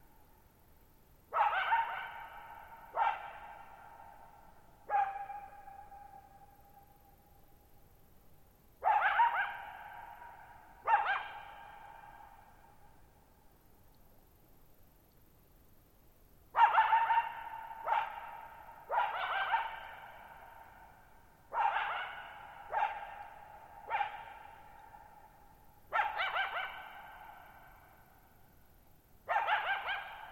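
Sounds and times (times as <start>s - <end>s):
coyote barking and howling: 1.3s - 4.3s, 8.8s - 12.4s, 16.6s - 27.9s, 29.3s - 30.3s.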